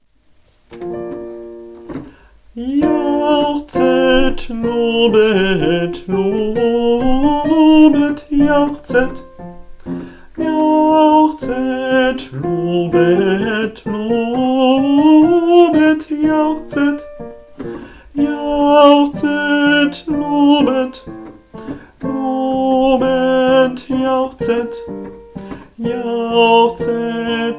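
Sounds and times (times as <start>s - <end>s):
soprano voice: 2.6s - 9.4s, 10.4s - 17.4s, 18.1s - 21.2s, 22.0s - 25.2s, 25.8s - 27.5s.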